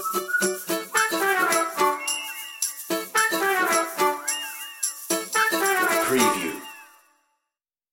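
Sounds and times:
ukulele: 0.0s - 6.7s
percussion: 0.0s - 7.1s
whistles: 0.0s - 7.1s
trumpet: 0.6s - 7.1s.

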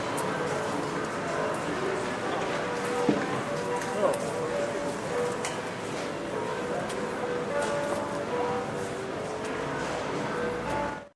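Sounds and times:
grocery store ambience: 0.0s - 11.1s.

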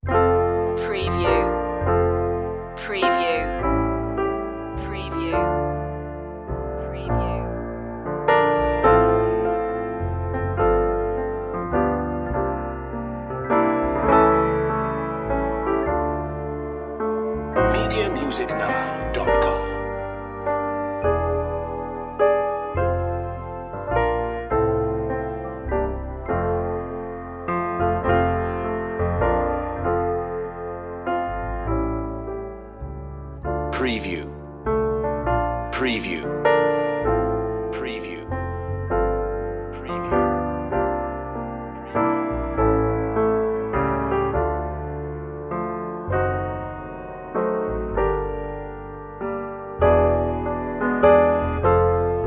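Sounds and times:
gospel piano: 0.0s - 52.2s.

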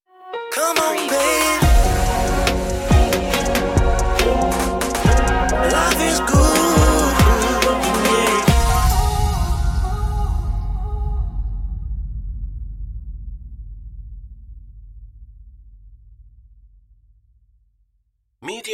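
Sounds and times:
smooth soul music stinger: 0.6s - 11.4s.

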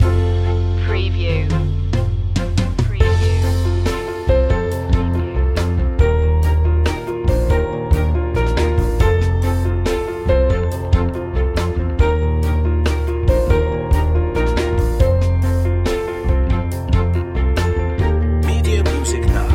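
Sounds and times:
acoustic mood music: 0.0s - 19.5s.

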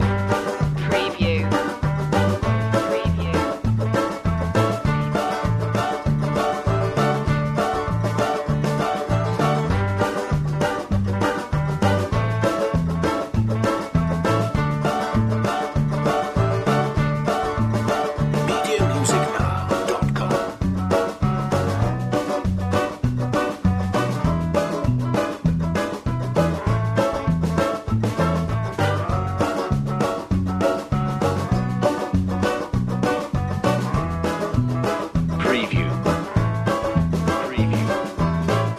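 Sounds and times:
jig tune: 0.0s - 38.7s.

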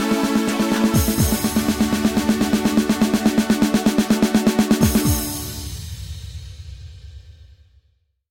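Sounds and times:
techno underscore music: 0.0s - 6.0s.

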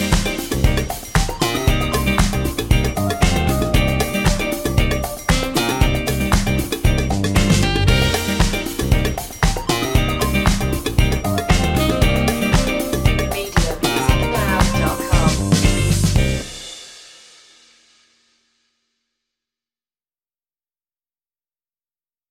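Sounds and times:
soul fusion music: 0.0s - 16.6s.

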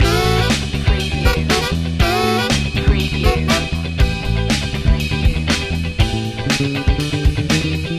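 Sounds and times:
funky loop: 0.0s - 7.9s.

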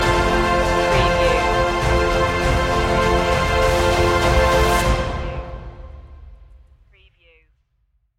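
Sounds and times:
orchestral stinger: 0.0s - 6.3s.

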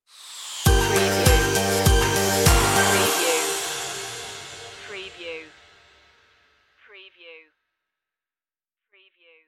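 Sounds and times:
stinger: 0.4s - 6.0s.

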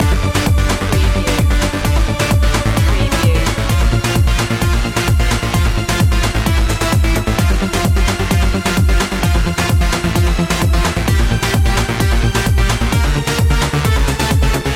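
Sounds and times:
electro symphony loop: 0.0s - 14.6s.

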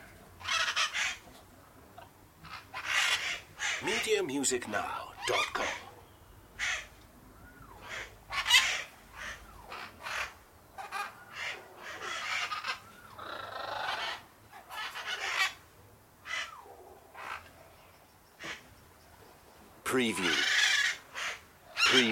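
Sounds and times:
background hiss: 0.0s - 22.1s
parakeet calls: 0.4s - 1.2s, 2.4s - 4.2s, 5.2s - 6.9s, 7.5s - 15.6s, 20.1s - 22.1s
speech: 3.8s - 5.8s.

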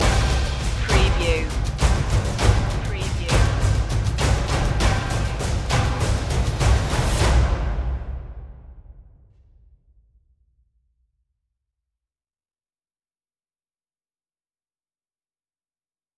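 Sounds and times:
percussion stinger: 0.0s - 9.7s.

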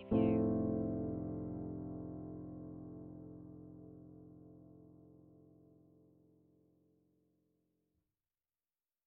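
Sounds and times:
relaxation music: 0.0s - 4.7s.

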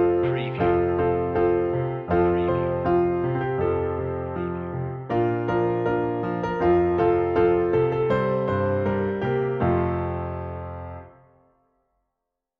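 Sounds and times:
piano piece at 80 bpm: 0.0s - 11.6s.

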